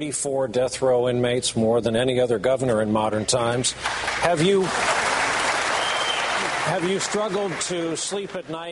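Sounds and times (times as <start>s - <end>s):
speech: 0.0s - 5.2s, 6.6s - 8.7s
audience applauding and cheering at a debate: 3.8s - 8.7s.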